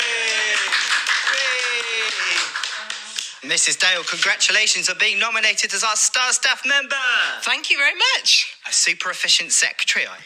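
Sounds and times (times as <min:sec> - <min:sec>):
round of applause: 0:00.0 - 0:04.5
speech: 0:03.5 - 0:10.2.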